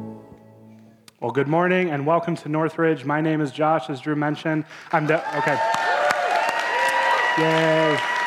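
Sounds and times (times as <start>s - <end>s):
speech: 1.2s - 5.8s, 7.4s - 8.1s
audience clapping: 4.7s - 8.2s.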